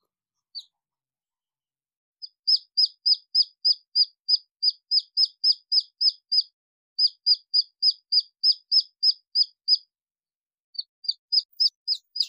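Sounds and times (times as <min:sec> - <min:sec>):
red junglefowl chick peeping: 0:02.2 - 0:09.8, 0:10.8 - 0:12.2.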